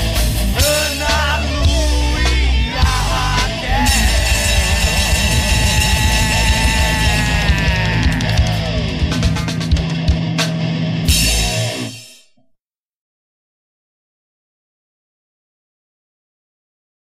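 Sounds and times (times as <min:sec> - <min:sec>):
rock music: 0:00.0 - 0:12.4.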